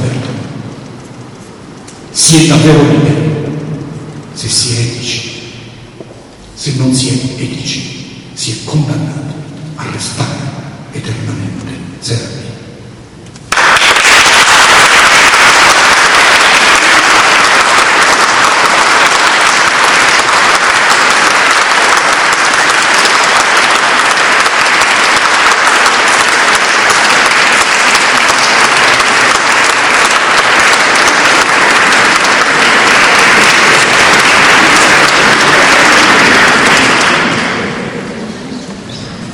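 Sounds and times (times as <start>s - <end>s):
speech: 2.2s - 3.4s, 4.4s - 5.4s, 6.0s - 12.4s
long applause from audience: 13.5s - 38.3s.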